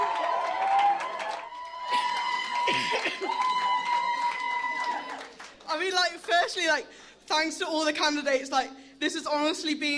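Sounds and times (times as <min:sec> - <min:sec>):
crowd clapping and cheering: 0:00.0 - 0:06.5
speech: 0:05.7 - 0:09.9.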